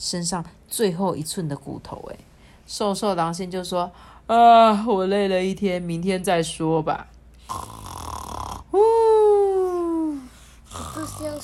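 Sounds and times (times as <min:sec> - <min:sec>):
speech: 0:00.0 - 0:08.0, 0:08.7 - 0:09.4, 0:10.8 - 0:11.4
loud rhythmic snoring: 0:07.4 - 0:08.7, 0:10.6 - 0:11.4.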